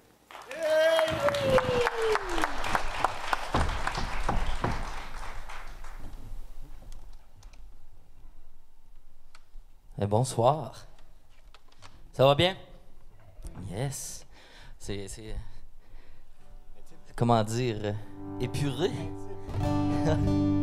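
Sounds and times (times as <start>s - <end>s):
audience applause: 0.3s - 6.5s
speech: 10.1s - 10.9s, 12.2s - 12.7s, 13.7s - 14.2s, 14.8s - 15.5s, 17.2s - 20.6s.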